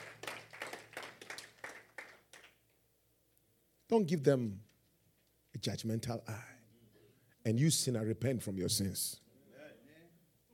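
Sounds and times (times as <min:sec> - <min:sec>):
group clapping along: 0:00.0 - 0:02.7
speech: 0:03.9 - 0:04.7, 0:05.6 - 0:06.6, 0:07.4 - 0:09.2.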